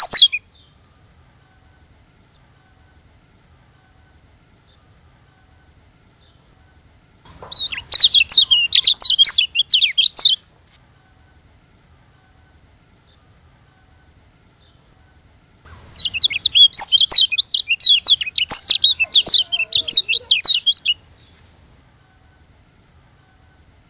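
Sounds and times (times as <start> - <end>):
white-eye twittering song: 0.0 - 1.0, 7.3 - 10.8, 14.5 - 14.9, 15.7 - 21.4.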